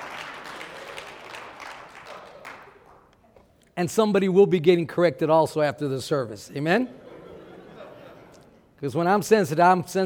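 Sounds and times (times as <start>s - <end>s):
crowd audience clapping: 0.0s - 3.2s
speech: 3.8s - 7.0s, 8.8s - 10.0s
laughter: 6.8s - 8.7s.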